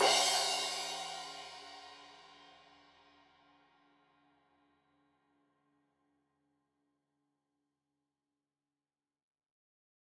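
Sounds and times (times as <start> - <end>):
15 inch crash cymbal edge hit: 0.0 - 2.1.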